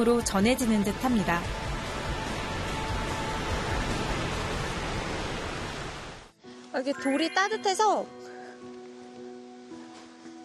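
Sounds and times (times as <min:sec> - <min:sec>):
speech: 0:00.0 - 0:01.6, 0:06.8 - 0:08.2
distant waterfall: 0:00.0 - 0:06.3.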